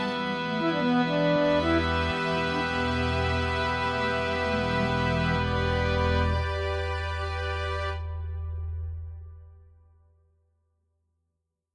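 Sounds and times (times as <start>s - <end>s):
woodwinds: 0.0s - 8.3s.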